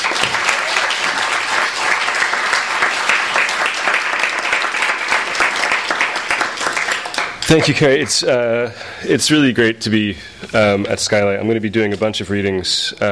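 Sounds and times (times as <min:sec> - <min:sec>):
audience applause: 0:00.0 - 0:08.2
speech: 0:07.5 - 0:13.1.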